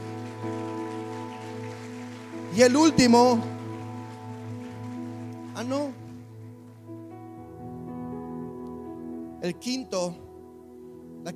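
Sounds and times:
crowd applause: 0.0 - 6.4
speech: 2.6 - 3.6, 5.6 - 6.0, 9.4 - 10.2.

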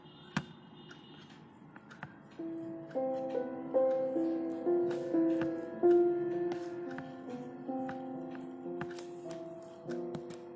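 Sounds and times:
clock ticking: 0.0 - 10.5
dark academia music: 1.6 - 10.5
pencil writing: 3.9 - 10.5.

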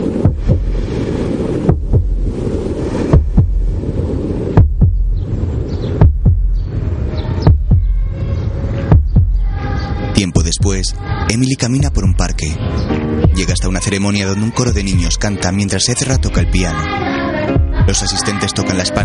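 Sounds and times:
heartbeat heard underwater: 0.0 - 3.8, 4.4 - 5.3, 5.9 - 6.7, 7.4 - 8.1, 8.9 - 9.5, 10.4 - 11.0, 11.8 - 12.4, 13.2 - 13.8, 17.6 - 18.1
constant low rushing hum: 0.0 - 18.6
speech: 10.8 - 17.2, 17.8 - 19.0.

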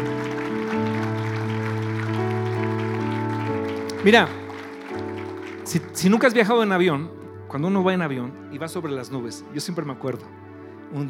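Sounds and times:
audience applause: 0.0 - 6.7
speech: 4.0 - 4.4, 5.7 - 11.0.

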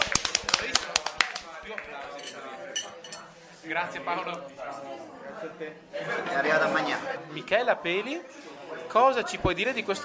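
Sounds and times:
hands clapping: 0.0 - 2.2
speech: 3.6 - 10.0.

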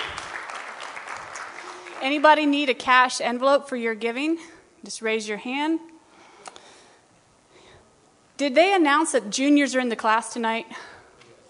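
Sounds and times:
audience applause: 0.0 - 2.2
speech: 2.0 - 5.9, 8.4 - 10.9.

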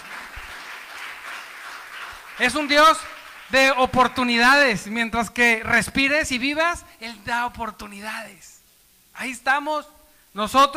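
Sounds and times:
audience applause: 0.0 - 3.6
speech: 2.4 - 8.6, 9.2 - 10.7.

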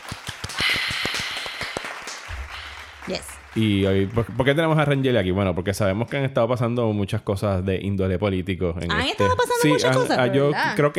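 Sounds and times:
brief applause from a few people: 0.0 - 5.9
speech: 3.1 - 10.9.

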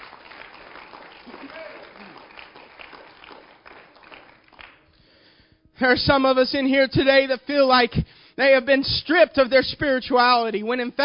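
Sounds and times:
crowd clapping: 0.0 - 5.0
speech: 5.8 - 11.0.

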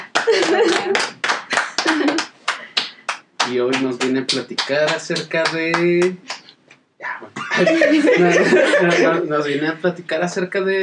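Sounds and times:
laughter: 0.0 - 2.2, 7.4 - 9.7
applause: 0.0 - 6.4
speech: 3.5 - 6.4, 7.2 - 10.8.

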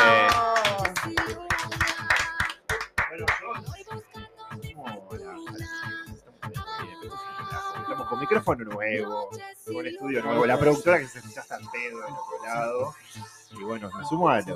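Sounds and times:
applause for the team: 0.0 - 3.4
speech: 8.3 - 14.5.

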